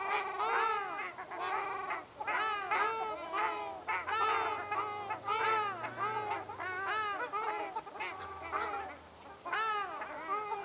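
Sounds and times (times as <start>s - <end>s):
ruddy shelducks honking: 0.1s - 10.5s
faint low hum: 2.2s - 9.6s.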